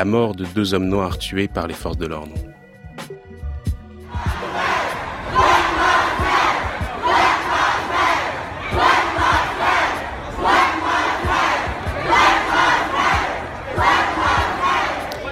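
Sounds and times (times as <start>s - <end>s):
speech: 0.0s - 2.6s
street protest crowd chanting Black Lives Matter: 4.1s - 15.2s.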